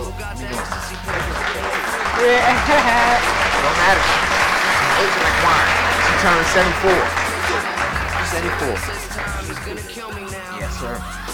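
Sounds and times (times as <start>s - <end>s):
murmured voices: 0.0s - 11.3s
applause: 0.4s - 10.0s
laughter: 0.4s - 10.1s
speech: 2.2s - 4.3s, 5.0s - 7.7s, 8.3s - 11.3s.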